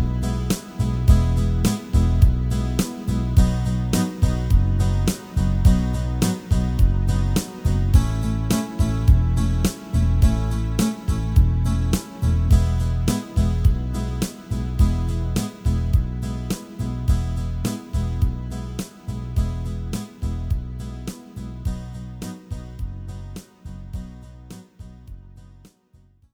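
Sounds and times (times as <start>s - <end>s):
guitar chord progression: 0.0s - 20.8s.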